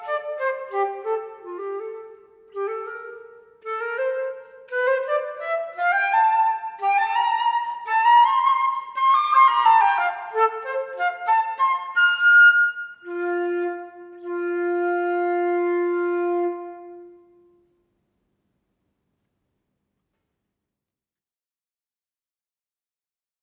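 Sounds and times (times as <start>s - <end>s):
flute study in F: 0.0s - 17.6s.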